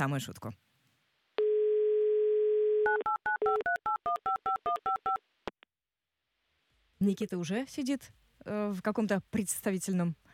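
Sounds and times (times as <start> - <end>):
speech: 0.0 - 0.7, 7.0 - 10.3
dial tone: 1.4 - 5.1.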